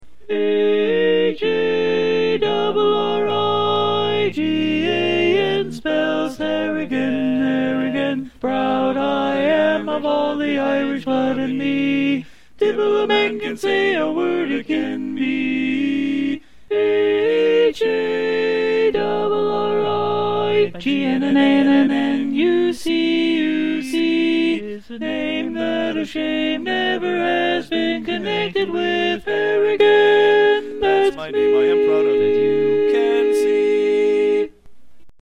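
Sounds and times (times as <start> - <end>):
tenor singing: 0.2 - 34.5.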